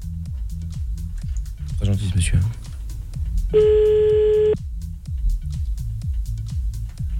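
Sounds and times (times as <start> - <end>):
rhythmic low music beat: 0.0 - 7.1
speech: 1.9 - 2.7, 3.5 - 4.7
telephone tone as a call is placed: 3.6 - 4.6.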